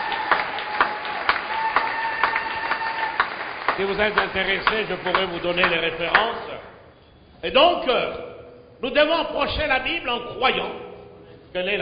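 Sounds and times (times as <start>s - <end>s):
church congregation clapping: 0.0s - 6.7s
speech: 3.8s - 6.5s, 7.4s - 10.8s, 11.5s - 11.8s.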